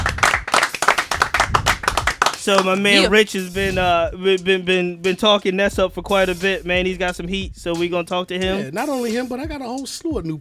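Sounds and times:
people clapping: 0:00.0 - 0:03.1
speech: 0:02.4 - 0:10.3.

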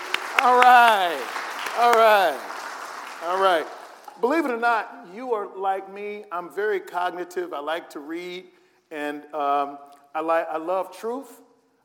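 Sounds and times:
audience whooping: 0:00.0 - 0:04.1
crowd clapping: 0:00.0 - 0:04.6
speech: 0:00.4 - 0:02.5, 0:03.2 - 0:11.4.

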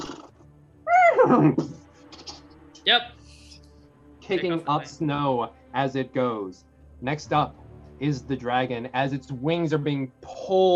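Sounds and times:
pony neighing: 0:00.9 - 0:01.8
speech: 0:01.3 - 0:01.8, 0:02.9 - 0:03.2, 0:04.3 - 0:10.7.

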